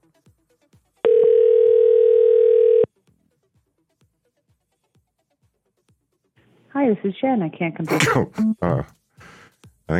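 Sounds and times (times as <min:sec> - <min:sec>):
telephone tone on an outgoing call: 0:01.1 - 0:02.9
speech: 0:06.8 - 0:09.0.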